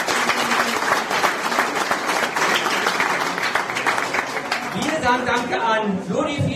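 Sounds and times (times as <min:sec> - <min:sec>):
audience applause: 0:00.0 - 0:05.5
speech: 0:05.1 - 0:06.5.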